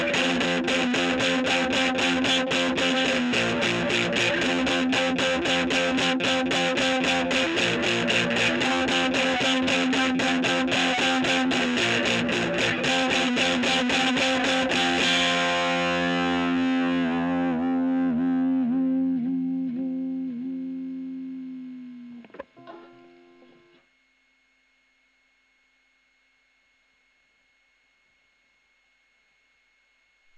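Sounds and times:
electric guitar recorded with a Gefell microphone: 0.0s - 23.8s.

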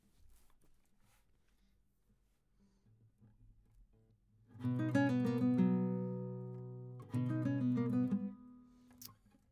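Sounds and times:
guitar: 4.5s - 9.4s.

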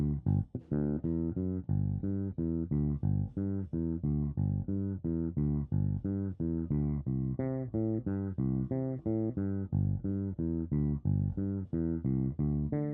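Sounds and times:
bass: 0.0s - 12.9s.

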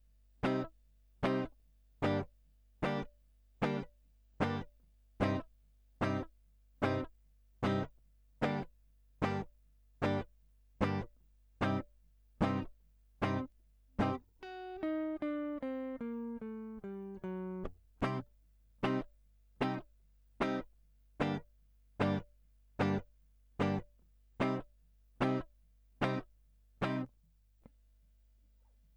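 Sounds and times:
guitar line: 0.4s - 2.2s, 2.8s - 5.4s, 6.0s - 6.2s, 6.8s - 8.6s, 10.0s - 10.2s, 10.8s - 11.0s, 11.6s - 11.8s, 12.4s - 18.2s, 18.8s - 19.8s, 20.4s - 20.6s, 21.2s - 21.4s, 22.0s - 22.2s, 22.8s - 23.0s, 23.6s - 23.8s, 24.4s - 24.6s, 25.2s - 25.4s, 26.0s - 26.2s, 26.8s - 27.1s.

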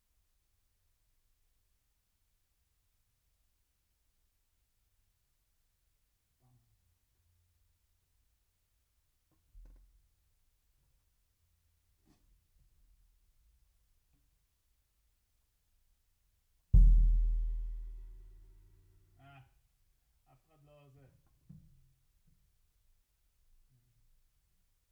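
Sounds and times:
bass drum: 16.8s - 18.4s.

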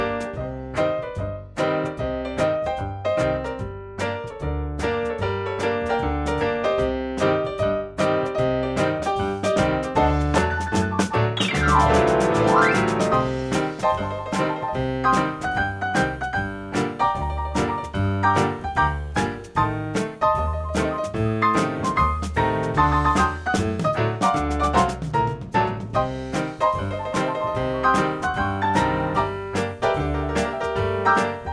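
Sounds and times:
ragtime music: 0.0s - 31.5s.

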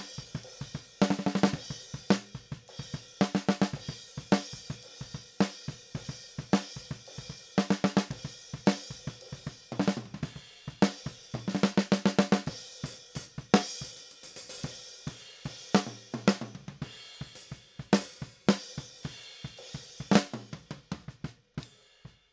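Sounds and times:
snare drum: 0.0s - 2.5s, 3.2s - 4.7s, 7.6s - 8.9s, 9.8s - 21.4s.

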